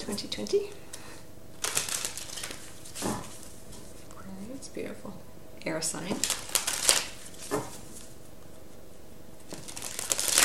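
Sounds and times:
speech: 0.0 - 0.9, 4.5 - 6.4
Life Purpose oracle deck cards riffling: 1.6 - 3.8, 6.2 - 8.2, 9.5 - 10.4.

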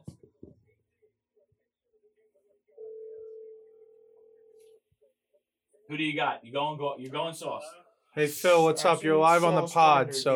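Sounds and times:
steady telephone line tone while a call is dialed: 2.8 - 4.7
speech: 5.9 - 10.3.

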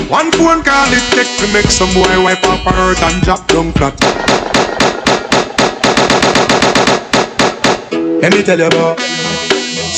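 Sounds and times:
speech: 0.1 - 4.4, 8.2 - 9.2
gunshot sound effects: 4.0 - 7.9.

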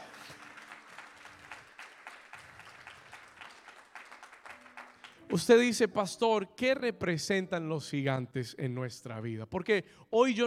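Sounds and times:
audience applause: 0.0 - 5.4
speech: 5.3 - 10.4.

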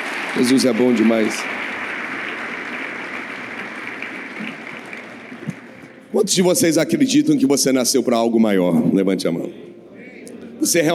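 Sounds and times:
audience applause: 0.0 - 6.0
speech: 0.4 - 1.6, 6.2 - 9.7, 10.6 - 10.9.

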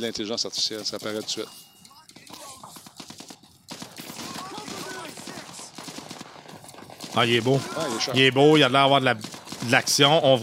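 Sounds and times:
speech: 0.0 - 1.7, 7.2 - 10.4
video game automatic gunfire: 2.1 - 10.4.

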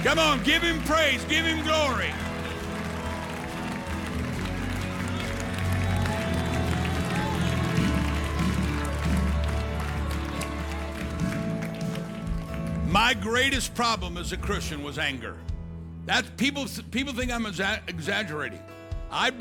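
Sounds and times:
speech: 0.0 - 2.3, 13.0 - 19.3
audience clapping in praise: 0.0 - 14.2.

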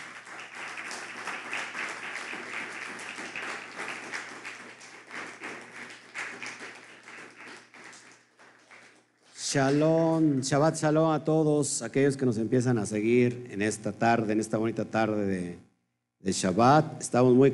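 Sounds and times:
audience applause: 0.0 - 9.0
speech: 9.5 - 17.5.

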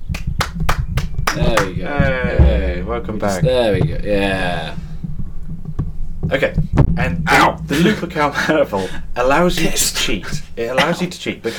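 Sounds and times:
hands clapping: 0.0 - 1.8
speech: 1.4 - 4.8, 6.3 - 11.5.

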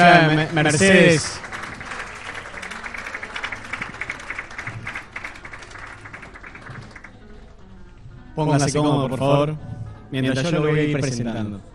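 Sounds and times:
speech: 0.0 - 1.5, 8.4 - 11.7
audience applause: 0.0 - 8.0.

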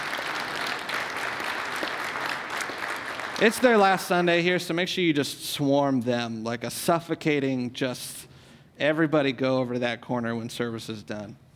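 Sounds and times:
audience applause: 0.0 - 4.1
speech: 3.4 - 11.4.

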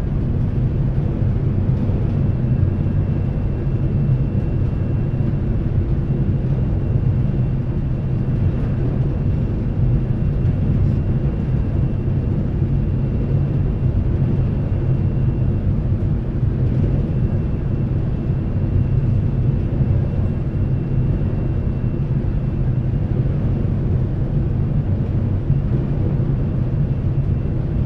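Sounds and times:
heavy rumble on the front car deck of the Seattle ferry crossing inbound: 0.0 - 27.8.

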